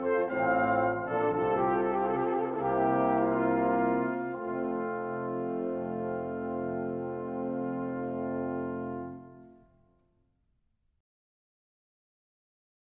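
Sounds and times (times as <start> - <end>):
concerto grosso: 0.0 - 9.7.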